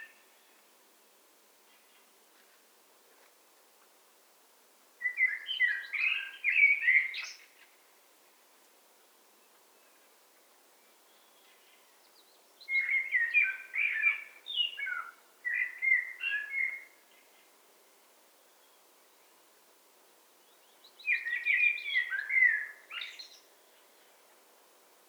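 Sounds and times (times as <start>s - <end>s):
Eurasian blackbird singing: 5.0s - 7.5s, 11.1s - 16.9s, 20.6s - 23.5s.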